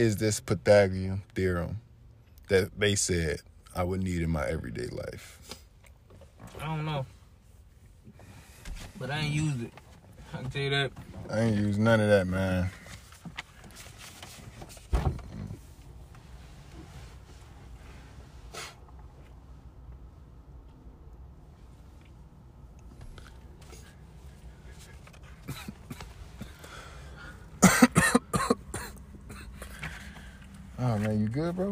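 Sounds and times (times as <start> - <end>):
speech: 0.0 - 1.8, 2.5 - 5.6, 6.6 - 7.2, 9.0 - 12.8, 31.4 - 31.7
person trying to sneeze: 27.6 - 29.6.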